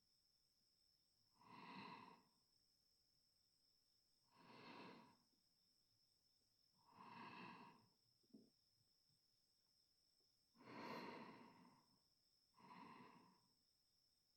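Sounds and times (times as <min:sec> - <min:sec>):
sleeping breath: 0:01.4 - 0:02.3, 0:04.3 - 0:05.2, 0:06.9 - 0:07.9, 0:10.6 - 0:11.9, 0:12.6 - 0:13.5.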